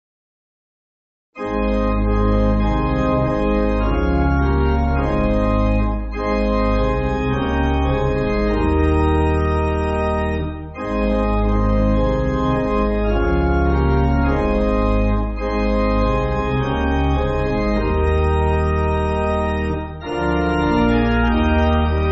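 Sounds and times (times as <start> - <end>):
church pipe organ backing music: 1.4 - 22.1.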